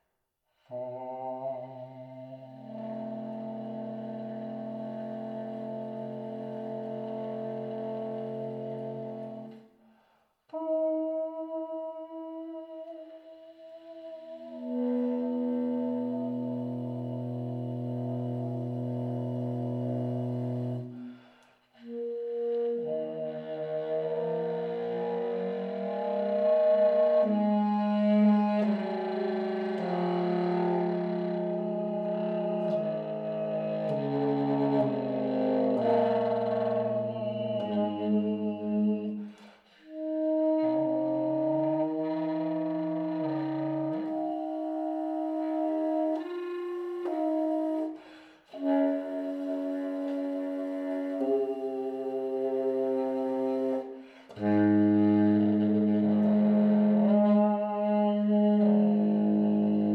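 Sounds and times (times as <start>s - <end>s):
saxophone playing techniques: 0.6s - 59.9s.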